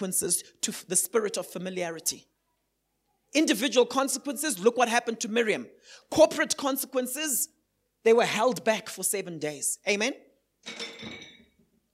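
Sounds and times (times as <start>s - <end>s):
speech: 0.0s - 2.3s, 3.3s - 11.2s
water bottle clinking and clattering: 10.6s - 11.6s.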